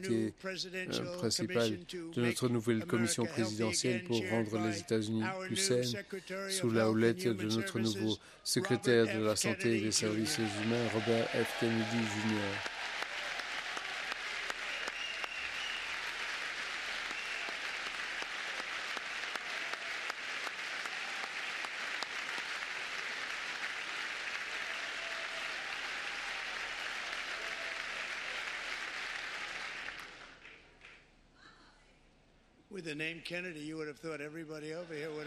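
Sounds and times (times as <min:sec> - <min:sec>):
speech: 0:00.0 - 0:12.7, 0:32.9 - 0:35.2
audience applause: 0:08.8 - 0:31.0.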